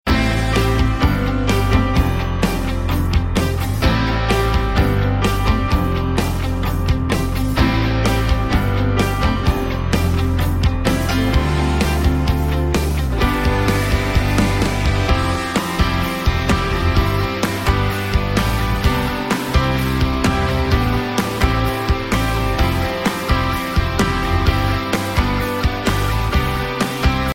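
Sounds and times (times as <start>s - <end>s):
instrumental music: 0.1s - 27.3s.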